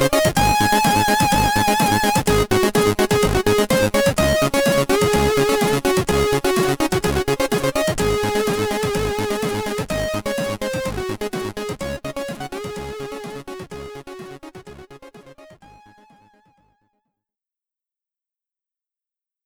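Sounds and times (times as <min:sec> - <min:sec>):
SID chip stereo loading music: 0:00.0 - 0:15.5.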